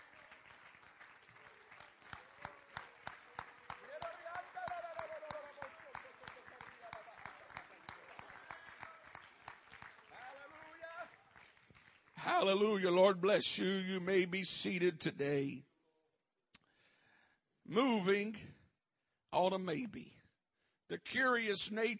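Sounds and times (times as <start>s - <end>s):
audience clapping hands in a rhythmic beat: 0.0s - 13.3s
speech: 12.3s - 15.7s, 17.7s - 18.5s, 19.4s - 20.2s, 20.9s - 21.9s.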